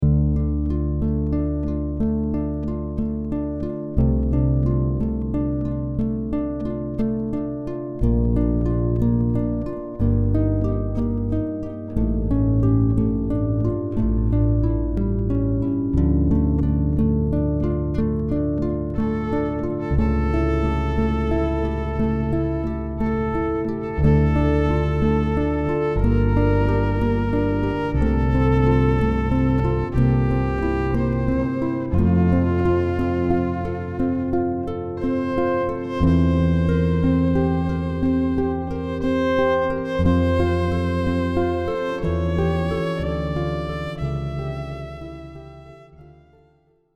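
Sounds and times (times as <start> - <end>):
electro-acoustic harp: 0.0 - 46.8
electric violin: 18.9 - 46.8.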